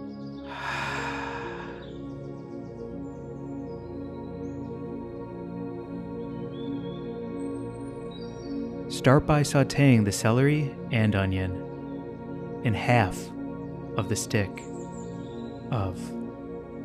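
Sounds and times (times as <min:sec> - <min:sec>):
deep breath in and out: 0:00.5 - 0:02.1
speech: 0:09.0 - 0:11.6, 0:12.6 - 0:13.4, 0:14.0 - 0:14.7, 0:15.7 - 0:16.2.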